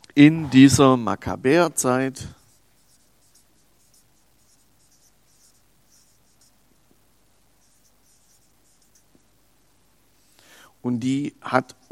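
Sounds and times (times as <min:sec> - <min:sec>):
speech: 0:00.2 - 0:02.4, 0:10.8 - 0:11.9
pen writing notes: 0:02.4 - 0:06.6, 0:07.6 - 0:09.2.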